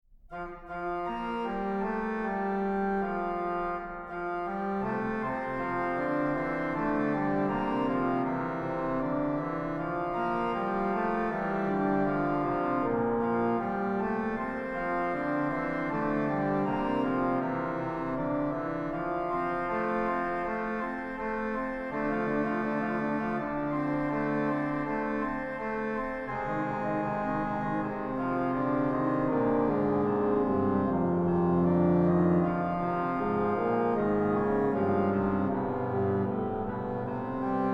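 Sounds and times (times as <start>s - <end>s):
fughetta: 0.3s - 37.7s.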